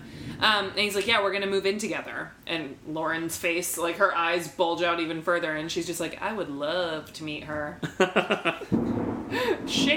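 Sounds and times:
speech: 0.4s - 9.9s
thunder: 8.7s - 9.9s.

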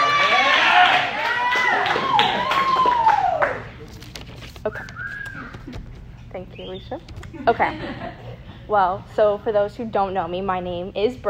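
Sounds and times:
crowd clapping: 0.0s - 3.8s
high voices whooping: 0.0s - 3.8s
speech: 6.8s - 11.2s
laughter: 7.3s - 8.6s.

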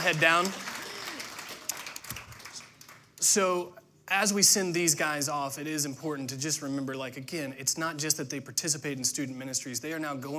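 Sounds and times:
speech: 0.0s - 0.6s, 3.2s - 10.3s
audience applause: 0.0s - 3.2s.

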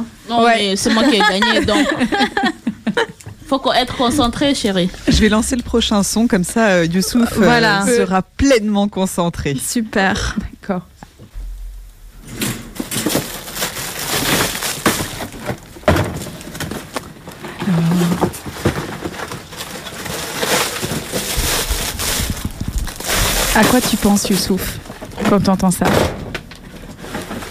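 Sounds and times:
speech: 0.3s - 2.6s, 3.5s - 11.0s, 23.6s - 26.2s
laughter: 0.8s - 4.3s
small bags crinkling: 12.8s - 25.8s.

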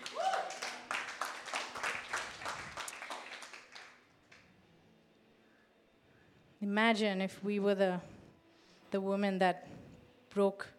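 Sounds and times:
audience clapping: 0.0s - 4.4s
speech: 6.6s - 8.1s, 8.9s - 10.7s.

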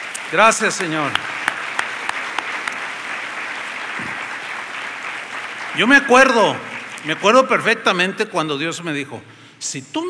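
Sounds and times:
audience applause: 0.0s - 8.0s
speech: 0.3s - 1.4s, 5.8s - 10.0s.

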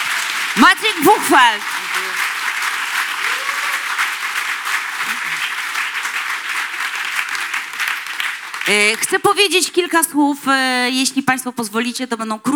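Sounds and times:
audience applause: 0.0s - 9.2s
speech: 0.6s - 2.2s, 8.7s - 12.5s.

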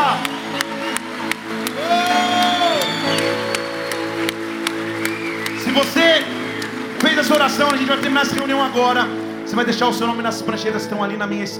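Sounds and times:
person whooping: 0.0s - 4.3s
audience applauding and cheering: 0.0s - 10.7s
sustained keyboard music: 0.0s - 11.5s
speech: 7.3s - 11.5s.

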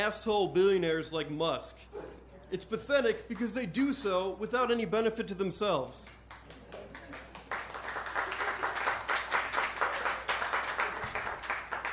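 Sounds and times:
speech: 0.0s - 7.2s
audience clapping: 6.0s - 11.9s.

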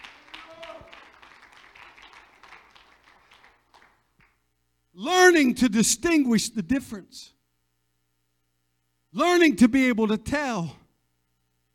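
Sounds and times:
audience clapping hands: 0.0s - 4.4s
speech: 5.0s - 7.4s, 9.2s - 10.8s.

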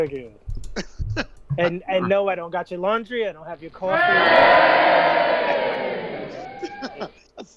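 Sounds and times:
speech: 0.0s - 5.8s, 7.0s - 7.5s
laughter: 0.8s - 2.2s, 3.8s - 7.5s
audience cheering and whooping for an intern at a live show: 3.8s - 7.2s.

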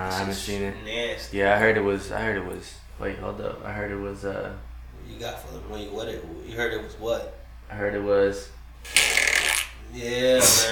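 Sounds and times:
speech: 0.2s - 9.3s, 9.9s - 10.7s
mouth fart: 8.9s - 9.8s.

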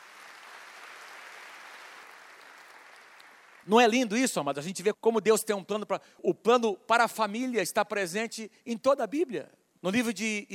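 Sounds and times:
audience applause: 0.0s - 3.7s
speech: 3.6s - 10.5s.

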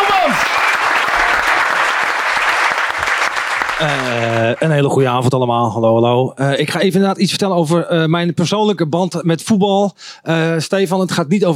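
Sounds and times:
loud audience applause: 0.0s - 4.8s
speech: 3.8s - 11.5s.

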